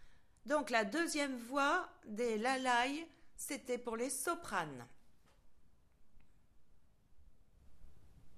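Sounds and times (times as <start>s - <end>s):
voice: 0.5s - 5.0s.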